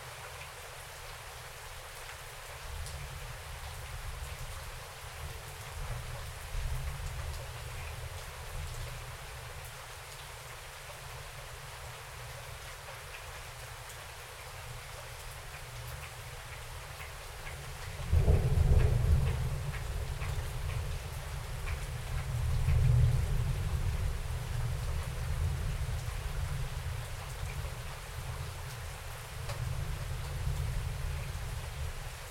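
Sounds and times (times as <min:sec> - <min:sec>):
rain outside: 0:00.0 - 0:32.2
thunder outside: 0:18.0 - 0:21.1.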